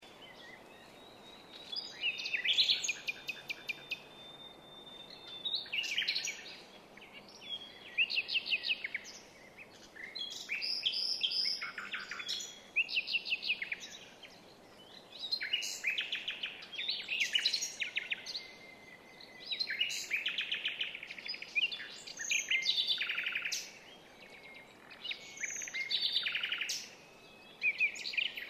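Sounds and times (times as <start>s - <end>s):
common nightingale song with clicks and whistles: 0.0s - 28.4s.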